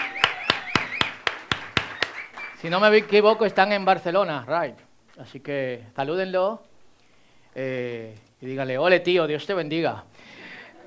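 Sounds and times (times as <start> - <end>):
rhythmic clapping: 0.0 - 4.0
speech: 2.6 - 6.7, 7.6 - 10.4.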